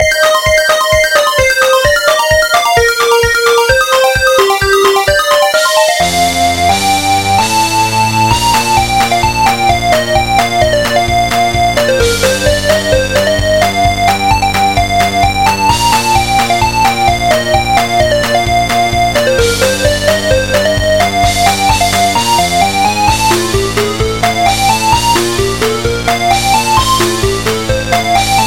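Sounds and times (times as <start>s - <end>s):
MIDI techno remix: 0.0s - 28.4s.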